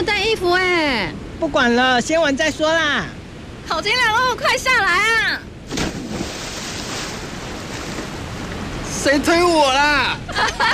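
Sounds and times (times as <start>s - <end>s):
speech: 0.3s - 5.5s, 9.0s - 10.7s
water splashing at a deep summer swimming spot as people jump in: 5.6s - 8.9s.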